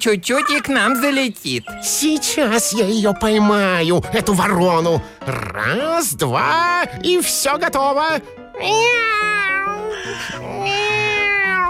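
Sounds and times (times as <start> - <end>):
speech: 0.0 - 11.2
cat meowing: 0.3 - 1.2, 8.6 - 11.6.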